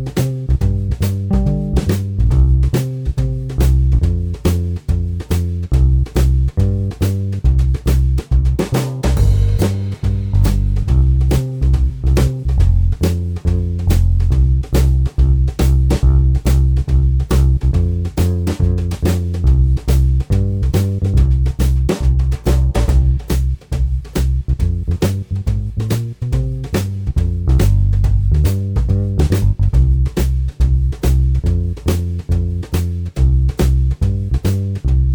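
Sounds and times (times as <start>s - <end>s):
boogie accompaniment: 0.0s - 35.1s.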